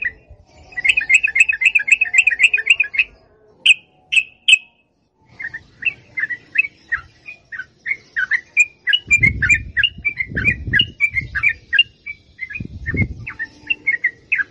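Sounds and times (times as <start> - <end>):
Yellow-vented bulbul song with long rapid chattering phrases: 0.0 - 14.4.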